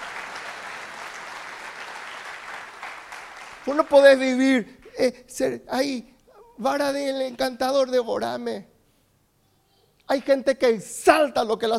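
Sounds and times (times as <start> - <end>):
audience applauding loudly: 0.0 - 4.3
speech: 3.6 - 8.7, 10.1 - 11.7.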